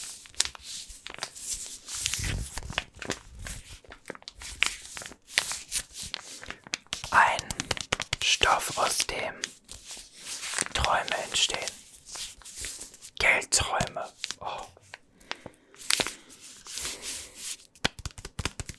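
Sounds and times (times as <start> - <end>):
full flour package crinkling: 0.0 - 18.7.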